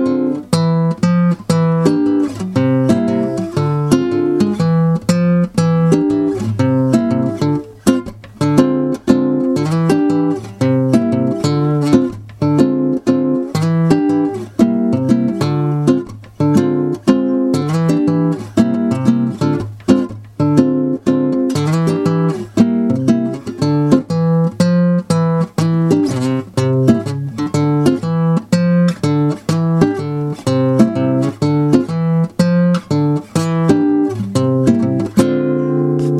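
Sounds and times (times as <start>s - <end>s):
guitar playing along in melodic minor mode VI: 0.0s - 36.1s.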